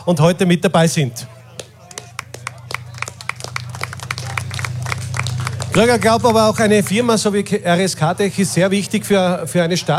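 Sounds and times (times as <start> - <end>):
speech: 0.0 - 1.3, 5.8 - 9.9
applause: 1.5 - 7.1.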